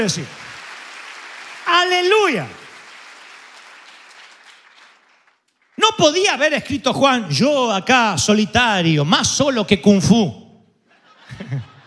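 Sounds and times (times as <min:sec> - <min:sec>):
speech: 0:00.0 - 0:00.4, 0:01.8 - 0:02.6, 0:05.9 - 0:10.4
church congregation applause during a Spanish-language sermon: 0:00.0 - 0:05.8
laughter: 0:10.9 - 0:11.8.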